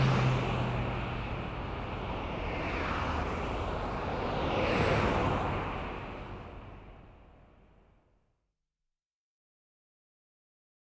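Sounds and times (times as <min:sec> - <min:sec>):
heavy big city traffic: 0:00.0 - 0:07.6.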